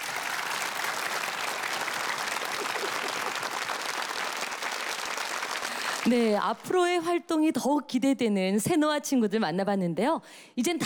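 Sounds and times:
large audience applauding: 0:00.0 - 0:06.6
speech: 0:06.0 - 0:10.8.

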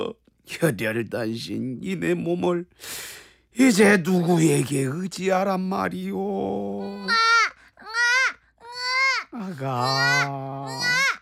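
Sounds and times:
speech: 0:00.0 - 0:07.3, 0:09.4 - 0:10.9
voice imitating a baby crying: 0:06.4 - 0:11.2.

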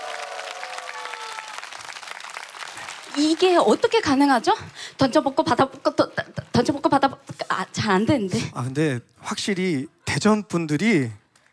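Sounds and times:
audience applause: 0:00.0 - 0:06.3
speech: 0:03.0 - 0:11.2.

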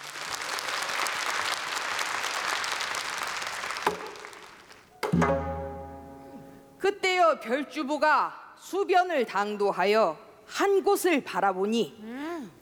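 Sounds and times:
audience applause welcoming performers: 0:00.0 - 0:04.7
speech: 0:07.3 - 0:12.6.

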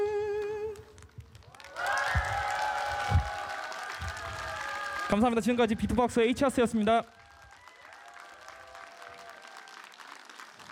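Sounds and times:
audience applause: 0:01.4 - 0:06.1, 0:06.8 - 0:10.6
speech: 0:05.1 - 0:07.2.

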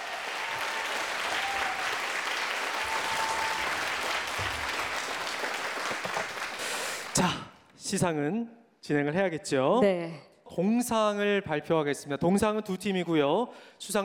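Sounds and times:
audience applause: 0:00.0 - 0:07.2
speech: 0:07.2 - 0:14.0.

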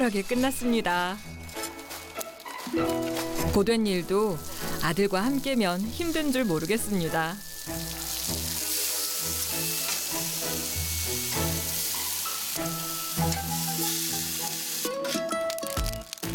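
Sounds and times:
speech: 0:00.0 - 0:01.4, 0:02.7 - 0:07.9
pork sizzling on a barbecue grill: 0:00.1 - 0:16.3.

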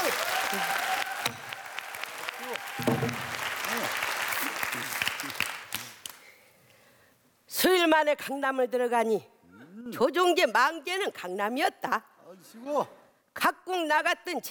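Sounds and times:
audience applause: 0:00.0 - 0:06.2
speech: 0:00.5 - 0:00.8, 0:08.0 - 0:14.4.

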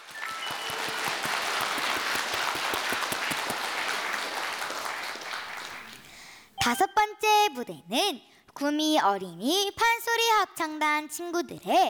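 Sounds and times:
audience applause: 0:00.0 - 0:06.2
speech: 0:06.6 - 0:11.8.

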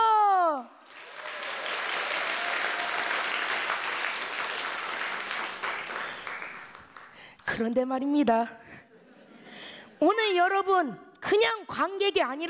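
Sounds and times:
audience applause: 0:00.8 - 0:07.2
speech: 0:07.6 - 0:08.8, 0:10.0 - 0:12.4.

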